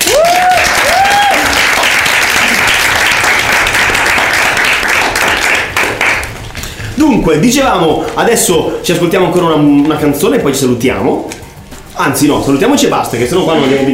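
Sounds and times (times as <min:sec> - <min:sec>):
applause: 0:00.0 - 0:06.8
speech: 0:07.1 - 0:11.4, 0:12.0 - 0:13.9.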